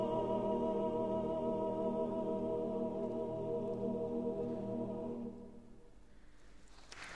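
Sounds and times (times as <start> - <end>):
male choir singing: 0.0 - 5.5.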